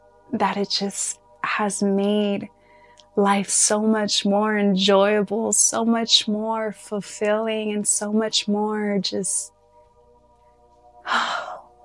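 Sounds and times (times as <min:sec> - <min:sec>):
faint steady hum: 0:00.0 - 0:11.8
speech: 0:00.3 - 0:02.6, 0:03.2 - 0:09.6, 0:11.1 - 0:11.5
deep breath: 0:02.5 - 0:03.1.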